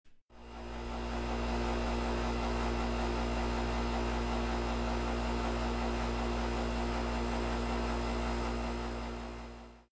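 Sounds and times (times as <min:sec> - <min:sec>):
home appliances: 0:00.0 - 0:09.9.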